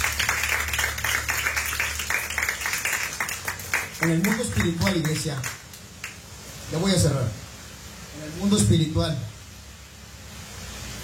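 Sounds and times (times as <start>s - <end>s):
crowd clapping loudly: 0.0s - 6.2s
speech: 4.0s - 5.6s, 6.7s - 7.4s, 8.2s - 9.3s.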